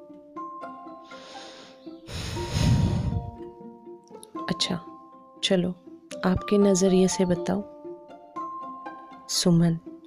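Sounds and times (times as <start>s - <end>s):
woman breathing deeply: 1.0s - 3.5s
speech: 4.5s - 7.7s, 9.3s - 9.9s.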